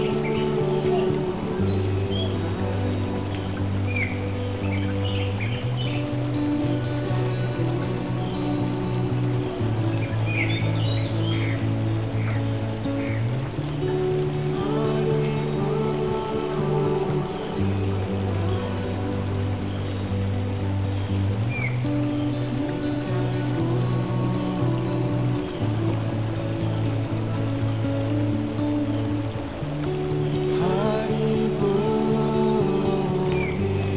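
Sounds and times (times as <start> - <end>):
gentle relaxing melody: 0.0 - 33.9.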